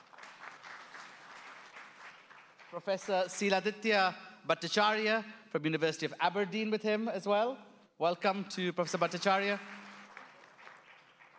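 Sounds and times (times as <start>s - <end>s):
audience applause at a university debate: 0.0s - 2.8s, 9.0s - 11.3s
speech: 2.7s - 9.8s.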